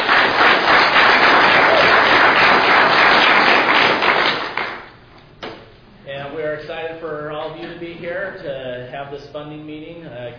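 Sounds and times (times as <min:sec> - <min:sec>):
audience applause: 0:00.0 - 0:04.9
speech: 0:09.0 - 0:10.3.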